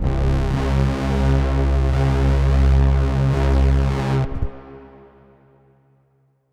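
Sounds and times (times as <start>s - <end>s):
Polybrute synth bass: 0.0s - 4.7s.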